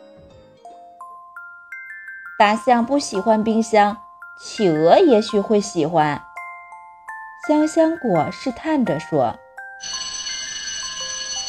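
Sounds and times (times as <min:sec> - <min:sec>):
speech: 0:02.4 - 0:06.3, 0:07.5 - 0:09.4
school class bell ringing: 0:09.8 - 0:11.4.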